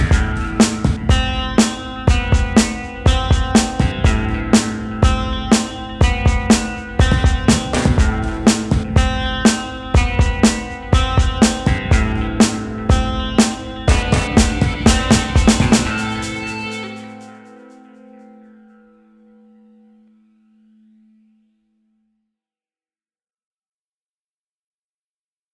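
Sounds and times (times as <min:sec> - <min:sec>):
acoustic music: 0:00.0 - 0:19.3.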